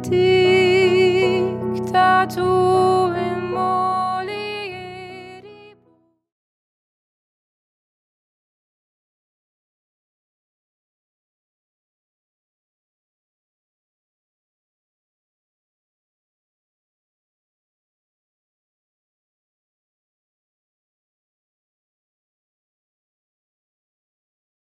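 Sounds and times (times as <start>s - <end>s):
person singing: 0.0s - 5.8s
piano accompaniment: 0.0s - 6.1s.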